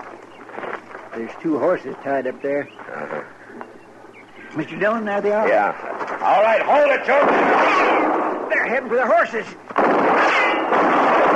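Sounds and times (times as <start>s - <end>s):
speech: 1.2s - 3.3s, 4.5s - 8.0s, 8.7s - 9.6s
gunshots: 6.9s - 8.7s, 9.7s - 11.3s.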